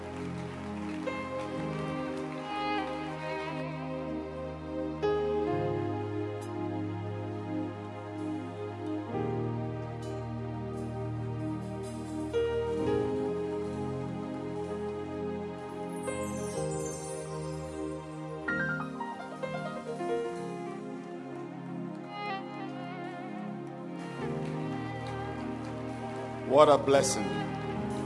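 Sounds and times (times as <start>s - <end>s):
audience clapping hands: 0.0s - 3.6s, 24.0s - 28.0s
loud sustained chords of accompanying music: 0.0s - 28.0s
speech: 26.6s - 27.4s.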